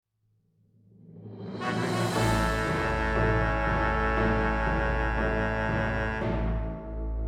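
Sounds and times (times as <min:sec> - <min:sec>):
tada fanfare: 0:01.5 - 0:07.1.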